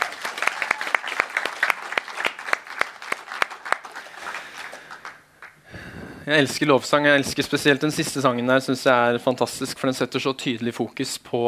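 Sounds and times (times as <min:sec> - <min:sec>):
audience applause: 0:00.0 - 0:05.6
speech: 0:06.3 - 0:11.4.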